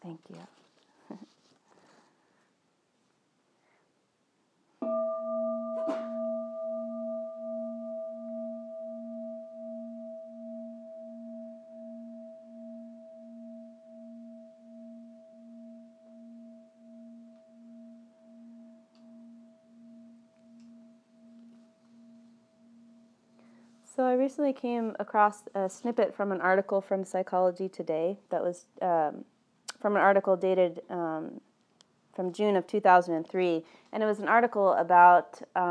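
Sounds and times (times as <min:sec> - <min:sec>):
meditation bell ringing: 0:04.8 - 0:23.9
speech: 0:24.0 - 0:31.5, 0:32.2 - 0:35.6.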